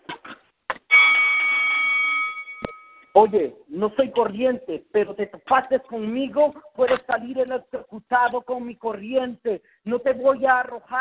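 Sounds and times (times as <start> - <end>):
bell signalling start of round: 0.9 - 3.2
speech: 3.2 - 10.9.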